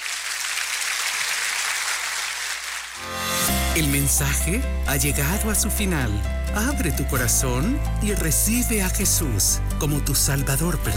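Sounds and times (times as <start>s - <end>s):
audience applause: 0.0s - 3.0s
speech: 3.8s - 10.9s.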